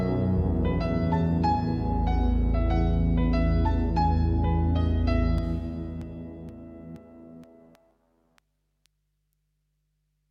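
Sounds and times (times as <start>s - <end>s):
rhythm: 0.0s - 7.9s.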